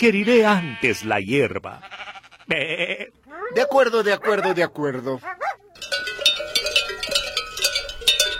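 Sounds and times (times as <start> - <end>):
speech: 0.0 - 6.2
small bell on a lamb ringing: 5.8 - 8.3.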